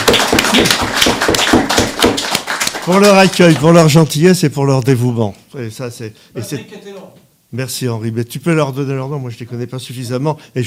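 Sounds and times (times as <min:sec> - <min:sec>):
audience applause: 0:00.0 - 0:03.8
speech: 0:02.9 - 0:10.6.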